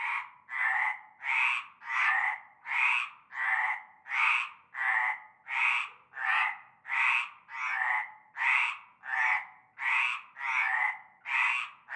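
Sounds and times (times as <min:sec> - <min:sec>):
frogs croaking in chorus from a concrete basin of stagnant water at nightfall in La Ciotat France: 0:00.0 - 0:11.9.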